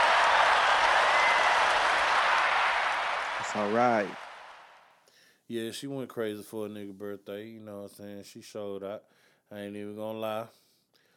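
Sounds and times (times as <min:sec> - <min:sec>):
round of applause: 0:00.0 - 0:04.9
speech: 0:03.6 - 0:04.2, 0:05.5 - 0:10.6.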